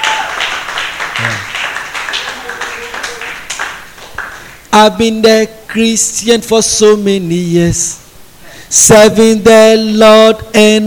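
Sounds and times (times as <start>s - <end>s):
audience clapping: 0.0s - 4.6s
speech: 4.8s - 8.0s, 8.7s - 10.8s.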